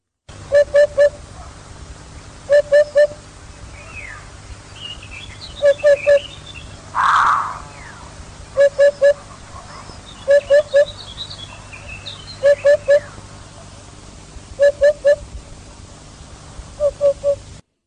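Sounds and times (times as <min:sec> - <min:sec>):
hoopoe call: 0:00.4 - 0:01.6, 0:02.4 - 0:04.3, 0:04.9 - 0:09.4, 0:10.0 - 0:13.7, 0:14.6 - 0:15.3, 0:16.8 - 0:17.5.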